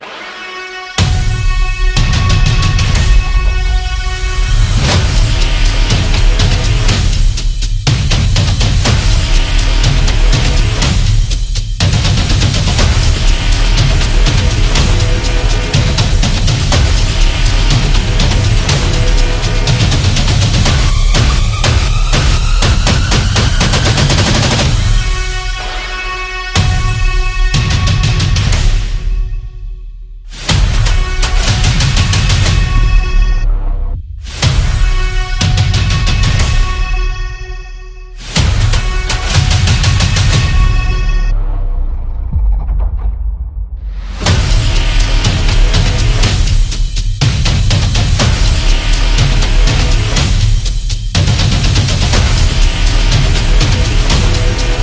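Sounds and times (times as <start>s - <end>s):
epic trailer build-up music: 0.0s - 54.8s.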